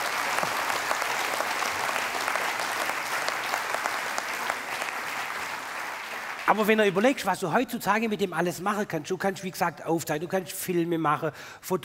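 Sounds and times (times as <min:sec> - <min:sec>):
audience clapping: 0:00.0 - 0:07.3
speech: 0:06.5 - 0:11.8.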